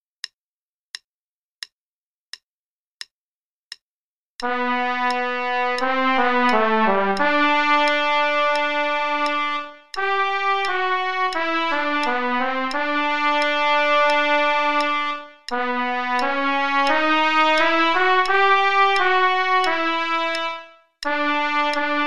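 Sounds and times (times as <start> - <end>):
trumpet play-along part in G: 4.4 - 22.0.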